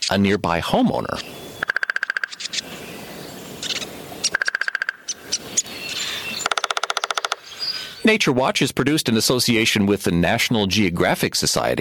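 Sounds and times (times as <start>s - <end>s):
speech: 0.1s - 1.4s, 8.0s - 11.7s
woodpecker pecking: 1.2s - 8.1s.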